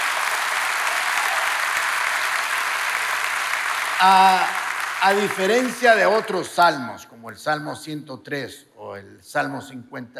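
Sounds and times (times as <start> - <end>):
audience applause: 0.0 - 6.6
speech: 4.0 - 10.1.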